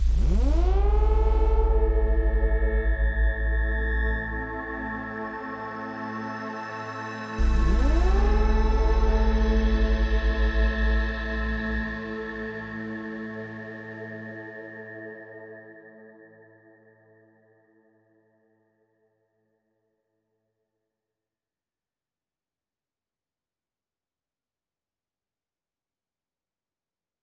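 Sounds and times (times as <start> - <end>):
synth pad: 0.0 - 14.6.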